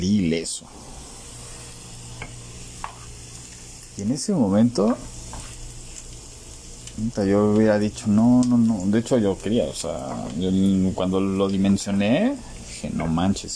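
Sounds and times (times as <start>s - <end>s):
speech: 0.0s - 1.0s, 4.0s - 5.2s, 7.0s - 13.5s
food sizzling while cooking breakfast: 0.0s - 13.5s.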